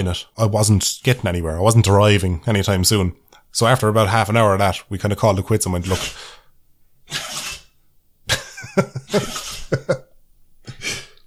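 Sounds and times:
speech: 0.0s - 6.4s, 7.1s - 7.3s, 8.8s - 10.0s
dog sneezing: 7.1s - 7.8s.

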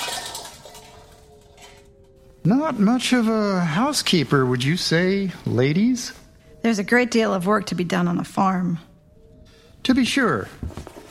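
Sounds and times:
metal pans kicked under a sink clattering: 0.0s - 1.9s
speech: 2.5s - 8.9s, 9.9s - 10.9s.

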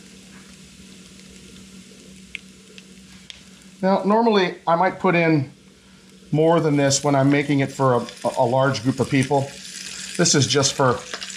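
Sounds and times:
Cajun shrimp sizzling in a pan: 0.0s - 11.3s
speech: 3.8s - 5.6s, 6.3s - 9.6s, 10.2s - 11.2s.

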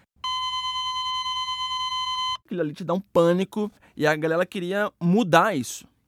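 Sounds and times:
heart monitor steady tone: 0.2s - 2.4s
speech: 2.5s - 5.9s.

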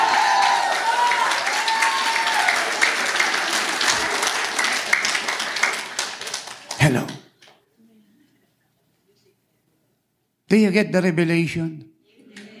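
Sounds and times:
applause: 0.0s - 7.3s
speech: 10.5s - 11.9s.

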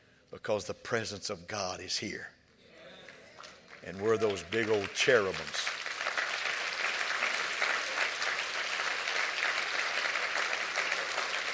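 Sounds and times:
speech: 0.3s - 2.4s, 3.8s - 5.8s
applause from a large gathering: 3.4s - 11.5s.

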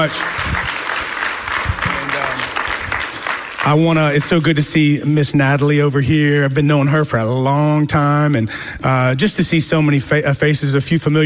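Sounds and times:
speech: 0.0s - 0.7s, 3.7s - 11.2s
audience clapping: 0.0s - 4.8s.

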